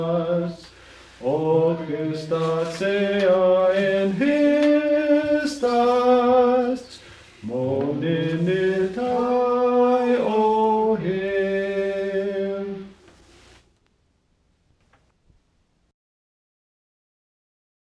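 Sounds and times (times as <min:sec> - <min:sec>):
hymnbook songs sung in the Cheyenne language: 0:00.0 - 0:13.0.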